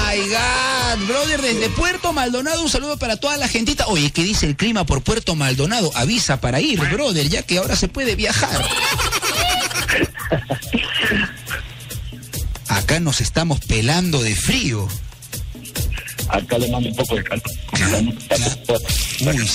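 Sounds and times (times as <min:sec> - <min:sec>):
speech: 0:00.2 - 0:09.3, 0:09.9 - 0:10.8, 0:12.9 - 0:15.1, 0:16.3 - 0:19.5
laughter: 0:08.3 - 0:11.6
voice over choppy, breaking-up phone call: 0:15.8 - 0:18.9.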